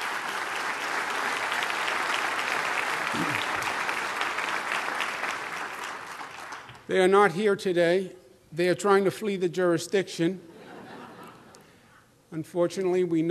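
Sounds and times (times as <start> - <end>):
audience applause: 0.0 - 6.8
speech: 6.9 - 10.5, 12.3 - 13.2
laughter: 10.5 - 11.6.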